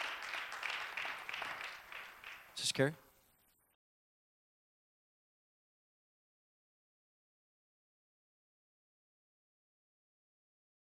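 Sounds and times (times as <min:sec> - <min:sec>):
applause: 0:00.0 - 0:03.0
speech: 0:02.6 - 0:03.0.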